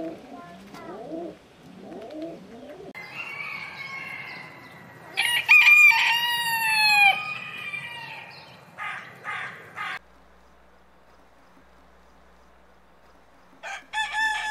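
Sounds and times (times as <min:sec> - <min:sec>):
rooster: 0:03.0 - 0:10.0, 0:13.6 - 0:14.4.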